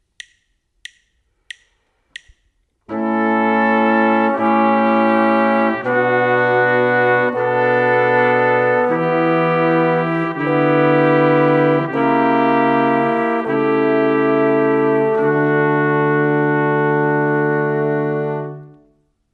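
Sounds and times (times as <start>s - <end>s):
brass quartet: 2.9s - 19.0s.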